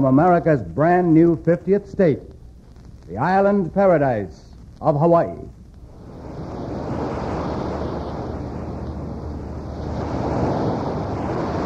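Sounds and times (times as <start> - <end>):
speech: 0.0 - 2.3, 3.1 - 5.6
wind buffeting: 5.8 - 11.6
ocean waves breaking on the beach at Waikiki, Hawaii: 5.9 - 11.6.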